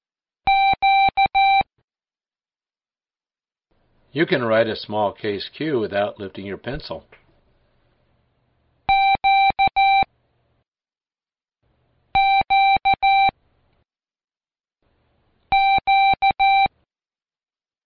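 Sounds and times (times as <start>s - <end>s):
Morse code letter Q keyed as beeping tone: 0.5s - 1.7s, 8.9s - 10.1s, 12.2s - 13.3s, 15.5s - 16.7s
speech: 4.1s - 7.2s.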